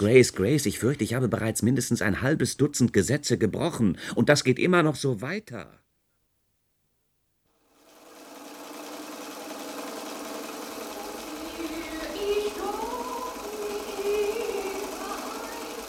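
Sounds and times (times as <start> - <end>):
speech: 0.0 - 5.8
sewing machine stitching curtains for a music room: 7.6 - 15.8.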